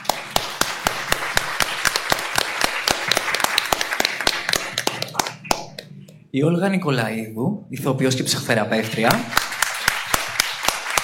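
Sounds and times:
audience applause: 0:00.0 - 0:05.7, 0:09.2 - 0:11.0
speech: 0:06.3 - 0:09.4.

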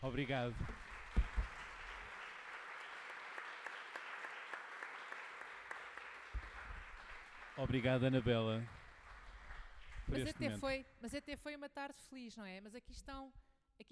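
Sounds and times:
speech: 0:00.0 - 0:00.8, 0:07.6 - 0:08.8, 0:10.1 - 0:13.8
audience applause: 0:00.0 - 0:10.6.

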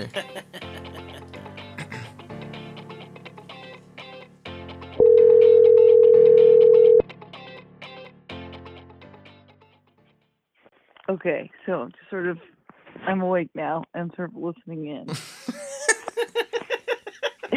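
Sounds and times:
speech: 0:00.0 - 0:00.7, 0:11.2 - 0:15.6
laughter: 0:00.0 - 0:02.2, 0:15.1 - 0:17.5
music: 0:00.0 - 0:10.1
outgoing phone call ringing tone: 0:05.0 - 0:07.0.

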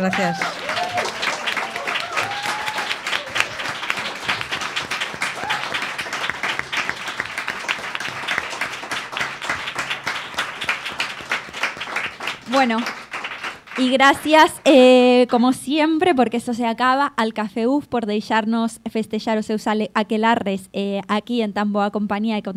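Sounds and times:
speech: 0:00.0 - 0:01.1, 0:12.6 - 0:13.0, 0:13.8 - 0:22.5
voices cheering: 0:00.0 - 0:08.5
audience applause: 0:00.0 - 0:14.6.

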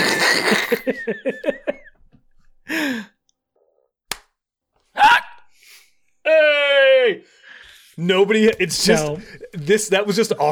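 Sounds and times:
speech: 0:00.5 - 0:01.7, 0:02.7 - 0:03.1, 0:06.3 - 0:07.4, 0:08.0 - 0:10.5
single hand clap: 0:04.1 - 0:04.3.

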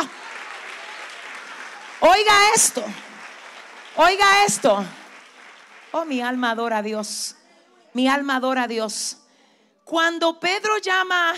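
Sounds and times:
audience applause: 0:00.0 - 0:06.4
speech: 0:02.0 - 0:03.1, 0:04.0 - 0:05.0, 0:05.9 - 0:09.2, 0:09.9 - 0:11.3.

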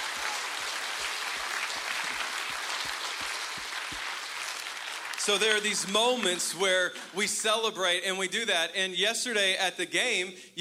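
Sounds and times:
hand clap of praise: 0:00.0 - 0:06.4
speech: 0:05.2 - 0:10.5.

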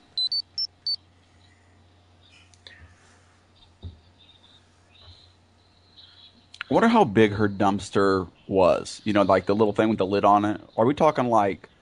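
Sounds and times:
low steady hum: 0:00.0 - 0:11.8
transition chime of bright electronic beeps: 0:00.2 - 0:01.0
speech: 0:06.7 - 0:11.7.

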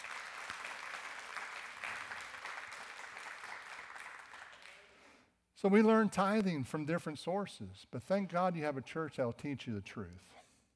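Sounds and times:
audience applause: 0:00.0 - 0:05.0
speech: 0:05.6 - 0:10.4.

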